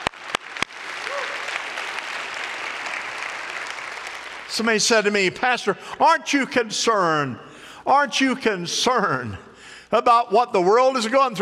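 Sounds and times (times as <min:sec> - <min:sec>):
audience applause: 0:00.0 - 0:04.8
speech: 0:04.6 - 0:11.3.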